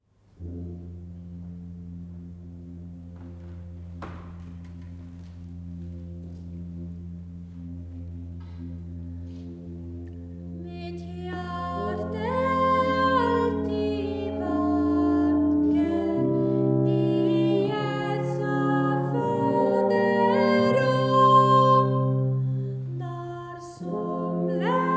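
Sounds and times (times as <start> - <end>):
chant: 0.4 - 24.9.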